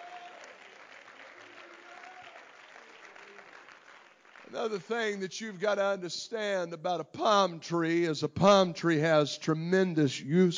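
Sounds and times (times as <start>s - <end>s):
audience clapping hands: 0.0s - 5.4s
speech: 4.5s - 10.5s.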